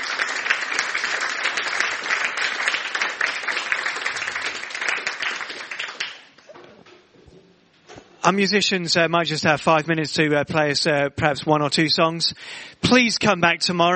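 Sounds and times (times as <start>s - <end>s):
audience applause: 0.0s - 6.5s
speech: 8.3s - 13.9s.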